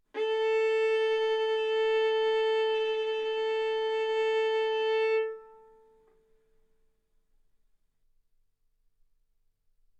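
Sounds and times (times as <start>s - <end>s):
violin arco on A string: 0.2s - 6.1s.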